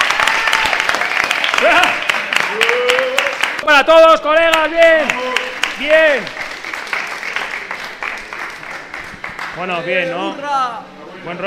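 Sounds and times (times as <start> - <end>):
audience applause and ovation: 0.0 - 3.6, 4.5 - 9.6
speech: 3.8 - 6.4, 9.6 - 11.4.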